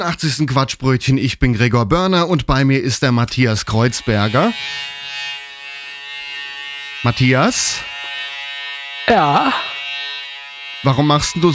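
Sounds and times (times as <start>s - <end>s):
speech: 0.0s - 5.0s, 7.0s - 7.9s, 9.1s - 9.7s, 10.8s - 11.5s
electric shaver buzzing: 3.8s - 11.5s.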